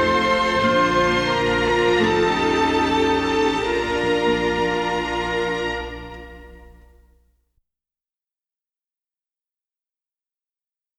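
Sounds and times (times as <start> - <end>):
string instrumental music: 0.0 - 7.2.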